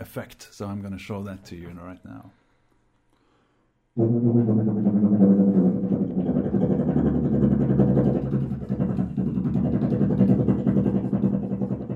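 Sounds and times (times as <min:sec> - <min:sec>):
speech: 0:00.0 - 0:02.4
tuba low-register double tonguing: 0:04.0 - 0:11.8.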